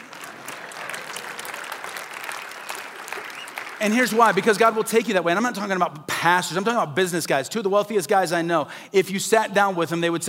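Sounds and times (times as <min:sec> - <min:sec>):
crowd applause: 0:00.0 - 0:04.8
speech: 0:03.8 - 0:10.2.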